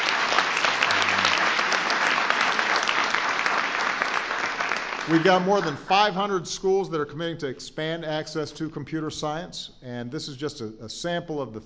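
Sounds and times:
audience applause: 0:00.0 - 0:05.9
speech: 0:05.0 - 0:11.6.

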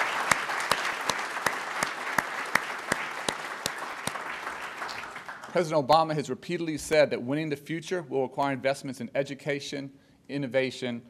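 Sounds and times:
audience applause: 0:00.0 - 0:05.7
speech: 0:05.5 - 0:11.0.

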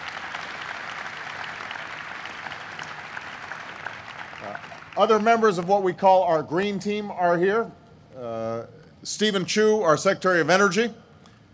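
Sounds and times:
audience applause: 0:00.0 - 0:05.5
speech: 0:04.5 - 0:11.0.

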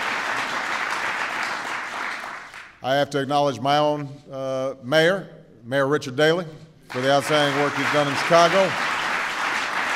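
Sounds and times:
audience applause for a newly named president: 0:00.0 - 0:02.7, 0:06.9 - 0:09.9
speech: 0:02.8 - 0:08.9.

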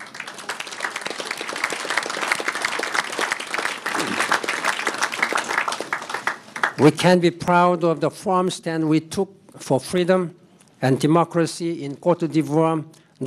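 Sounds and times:
crowd applause: 0:00.0 - 0:06.8
speech: 0:06.8 - 0:13.2.

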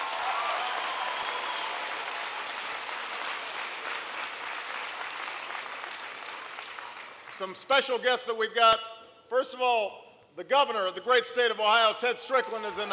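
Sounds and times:
audience applause: 0:00.0 - 0:07.4, 0:12.3 - 0:12.9
speech: 0:07.4 - 0:12.9.

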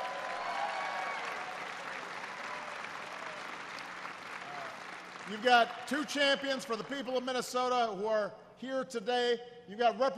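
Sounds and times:
audience clapping: 0:00.0 - 0:07.3
speech: 0:05.3 - 0:10.1.

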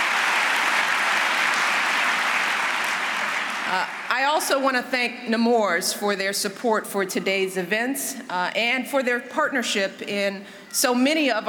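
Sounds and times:
round of applause: 0:00.0 - 0:04.1
speech: 0:03.7 - 0:11.4.

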